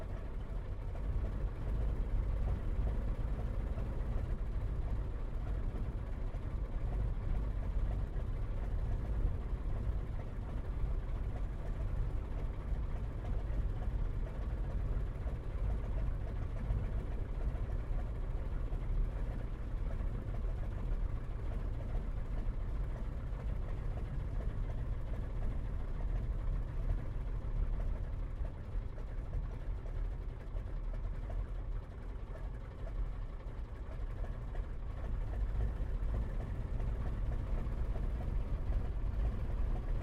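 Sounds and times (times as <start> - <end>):
replica 1916 Sopwith Pup aircraft engine idling heard from the interior: 0.0 - 39.9.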